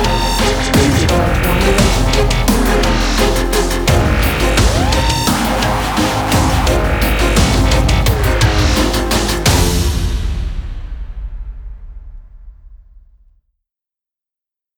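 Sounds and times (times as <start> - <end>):
dubstep alarm: 0.0 - 10.4.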